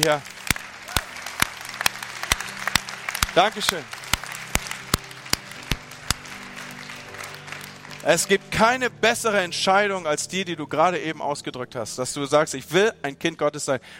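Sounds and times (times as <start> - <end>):
speech: 0.0 - 0.4, 3.4 - 4.0, 8.0 - 13.9
audience applause: 0.0 - 8.4.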